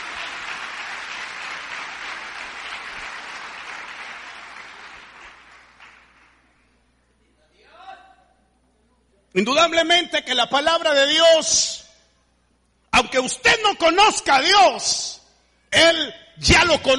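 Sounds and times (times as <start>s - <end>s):
audience clapping: 0.0s - 6.6s
speech: 9.4s - 11.8s, 13.1s - 16.9s.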